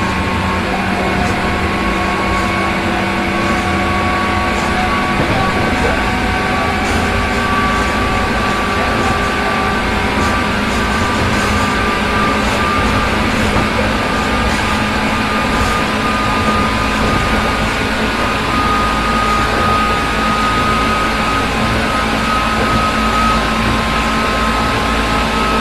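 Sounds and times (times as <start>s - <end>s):
103 series rapid train: 0.0s - 25.5s.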